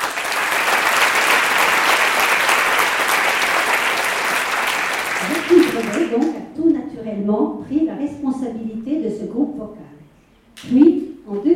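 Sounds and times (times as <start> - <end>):
crowd applauding: 0.0 - 6.4
speech: 7.1 - 9.9, 10.6 - 11.4.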